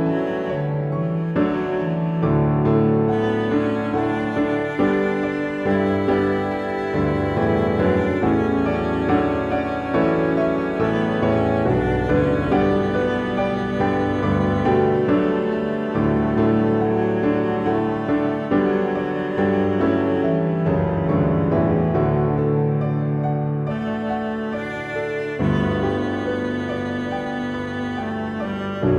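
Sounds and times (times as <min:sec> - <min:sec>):
cello and piano piece in a major key: 0:00.0 - 0:28.9.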